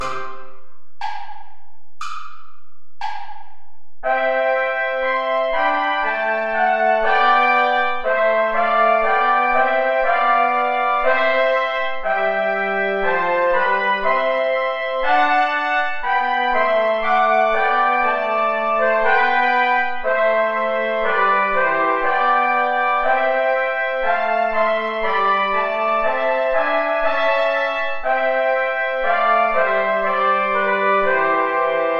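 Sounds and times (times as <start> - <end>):
play-along backing music without trombone: 0.0 - 31.9.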